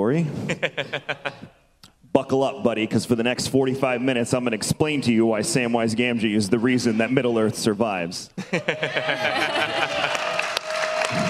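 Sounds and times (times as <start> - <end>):
speech: 0.0 - 1.4, 2.3 - 10.0
laughter: 0.4 - 1.6, 8.4 - 11.2
clapping: 9.8 - 11.2.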